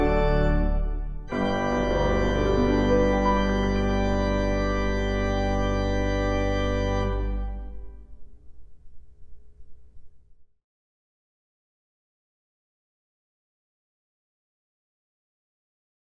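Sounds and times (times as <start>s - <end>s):
improvised hymn duet: 0.0s - 7.8s.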